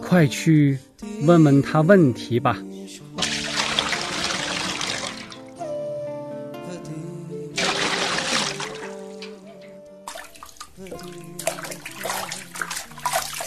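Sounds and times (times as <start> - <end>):
speech: 0.1 - 2.7
priest washing hands and feet with water at a basin: 3.2 - 5.6, 7.6 - 9.4, 10.1 - 13.4.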